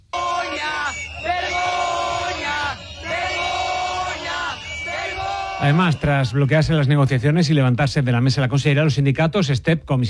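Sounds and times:
crowd of protesters shouting in unison: 0.0 - 6.6
speech: 5.6 - 10.0.

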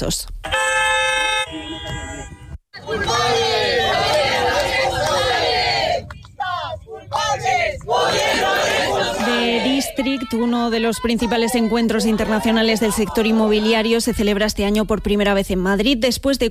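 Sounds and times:
speech: 0.0 - 0.6, 10.0 - 16.4
sustained horn-like tone: 0.4 - 2.6
protesters shouting at a public event: 2.8 - 14.4.

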